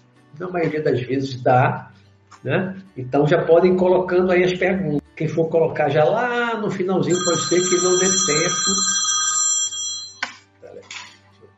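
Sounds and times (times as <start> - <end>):
speech: 0.4 - 9.0
telephone ringing: 7.1 - 10.3.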